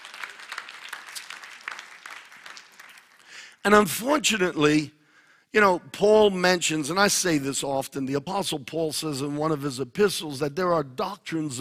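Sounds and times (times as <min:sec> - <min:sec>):
audience applause: 0:00.0 - 0:03.5
speech: 0:03.6 - 0:11.5.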